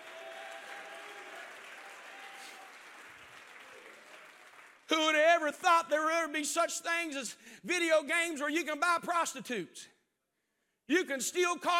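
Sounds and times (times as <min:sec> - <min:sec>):
audience clapping: 0:00.0 - 0:05.1
speech: 0:04.9 - 0:10.0, 0:10.9 - 0:11.7.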